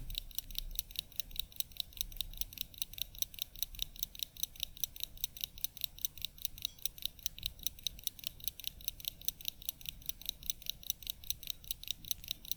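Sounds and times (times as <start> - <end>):
faint low hum: 0.0 - 0.6
old wind-up watch ticking: 0.0 - 12.5.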